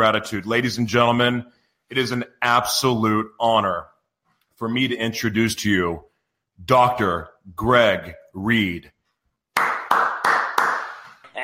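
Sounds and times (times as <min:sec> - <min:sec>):
speech: 0:00.0 - 0:03.9, 0:04.6 - 0:09.0
applause-like clapping sound effect: 0:09.5 - 0:11.2.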